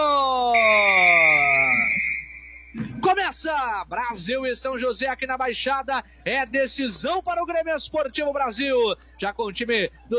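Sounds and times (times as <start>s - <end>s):
referee's whistle starting a football match between Brasil and São José: 0.6s - 2.8s
speech: 3.3s - 10.1s.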